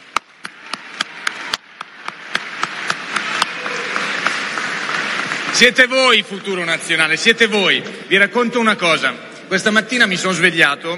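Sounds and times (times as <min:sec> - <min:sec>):
crowd applause: 0:00.0 - 0:07.5
sharp evenly spaced rhythmic claps: 0:00.0 - 0:08.0
speech: 0:05.6 - 0:10.9.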